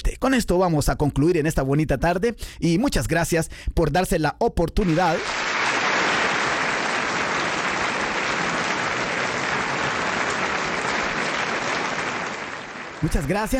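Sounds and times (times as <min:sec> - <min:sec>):
speech: 0:00.2 - 0:05.5, 0:13.0 - 0:13.5
applause: 0:04.8 - 0:13.5.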